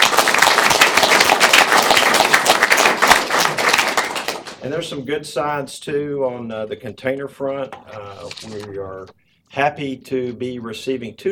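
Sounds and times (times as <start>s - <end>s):
audience applause: 0.0s - 4.6s
speech: 4.7s - 11.3s.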